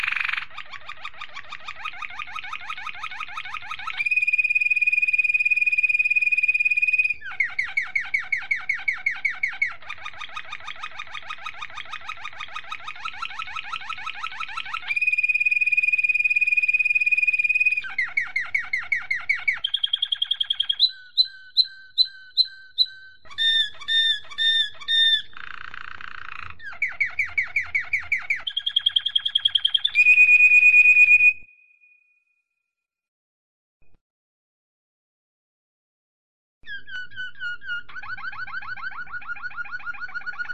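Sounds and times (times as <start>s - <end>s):
domestic canary singing: 0.0s - 31.9s, 36.7s - 40.5s.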